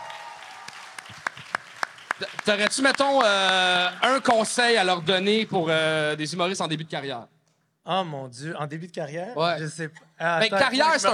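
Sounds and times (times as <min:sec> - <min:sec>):
audience applause: 0:00.0 - 0:05.3
speech: 0:02.2 - 0:11.1.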